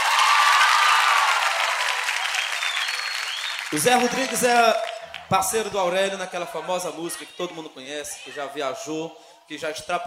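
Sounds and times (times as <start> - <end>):
audience applause: 0.0 - 5.7
speech: 3.7 - 10.0.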